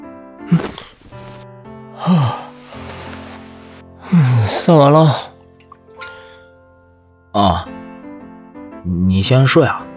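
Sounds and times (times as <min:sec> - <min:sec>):
speech: 0:00.5 - 0:00.9, 0:02.0 - 0:02.4, 0:04.6 - 0:05.3, 0:07.4 - 0:07.8, 0:08.8 - 0:09.9
person yawning: 0:02.0 - 0:02.5.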